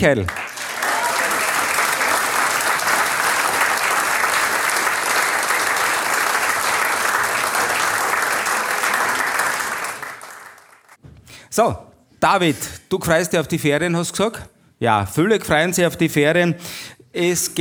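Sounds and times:
speech: 0:00.0 - 0:00.4, 0:11.6 - 0:17.5
audience applause: 0:00.0 - 0:11.0.

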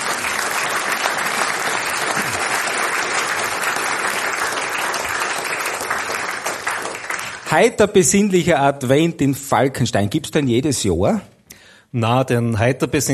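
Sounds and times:
audience applause: 0:00.0 - 0:07.7
speech: 0:07.5 - 0:11.3, 0:11.9 - 0:13.1.

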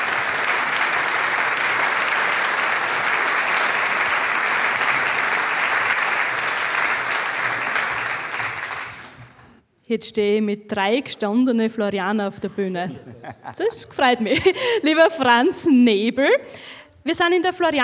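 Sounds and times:
audience applause: 0:00.0 - 0:09.6
speech: 0:09.9 - 0:17.8
laughter: 0:12.5 - 0:15.2.

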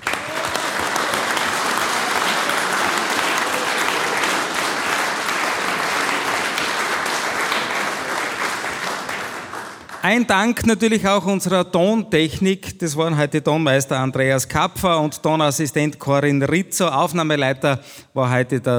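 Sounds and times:
audience applause: 0:00.0 - 0:10.2
speech: 0:10.1 - 0:18.7.

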